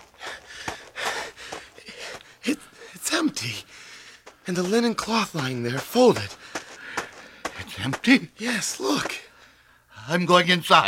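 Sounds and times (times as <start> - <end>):
man panting out of breath after running to a garden tomb: 0.0 - 3.0, 6.3 - 7.6
speech: 2.4 - 3.8, 4.5 - 6.4, 7.8 - 9.2, 10.1 - 10.8.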